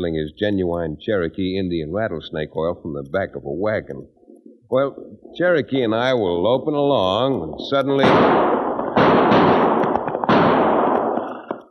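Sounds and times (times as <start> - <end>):
speech: 0.0 - 8.6
gunshots: 8.0 - 11.6.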